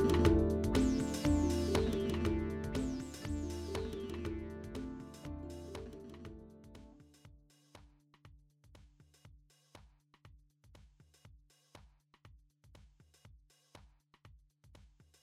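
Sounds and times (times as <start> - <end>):
MIDI music: 0.0 - 7.0.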